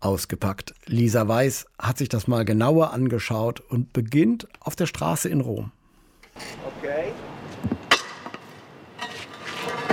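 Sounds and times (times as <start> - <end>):
speech: 0.0 - 5.8, 6.4 - 7.2
metal manhole cover pushed with a long tool over cobblestones in central Rome: 7.6 - 9.9.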